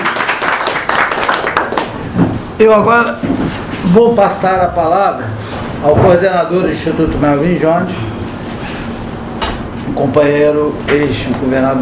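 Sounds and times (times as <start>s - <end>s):
audience applause at a ceremony honouring the pavilion: 0.0s - 2.0s
speech: 2.6s - 8.1s, 10.0s - 11.8s.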